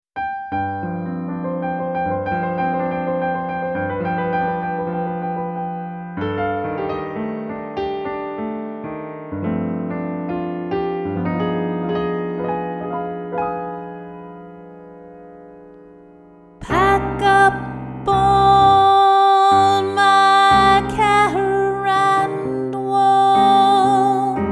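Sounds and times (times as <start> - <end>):
piano: 0.2 - 24.4
person singing: 16.6 - 24.4.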